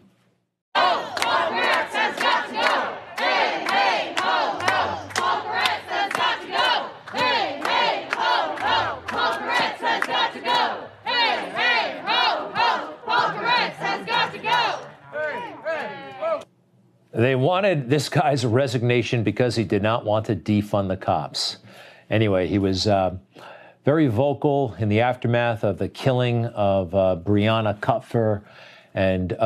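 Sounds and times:
protesters yelling outside a house: 0.8 - 16.4
speech: 17.2 - 29.4.

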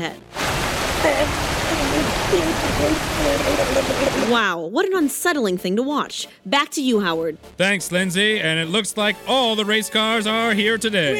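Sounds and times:
speech: 0.0 - 0.4, 1.0 - 11.1
water gushing from a fire hydrant: 0.3 - 4.4.

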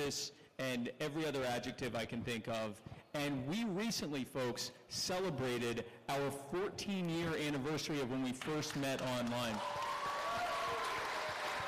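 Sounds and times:
speech: 0.0 - 9.8
audience applause: 9.0 - 11.6.

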